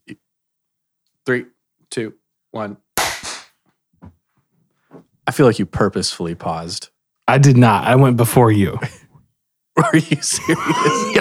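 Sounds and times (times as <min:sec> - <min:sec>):
speech: 0:01.3 - 0:02.8, 0:04.9 - 0:09.0, 0:09.8 - 0:11.1
hand clap in unison: 0:03.0 - 0:03.5
laughter: 0:09.8 - 0:11.1.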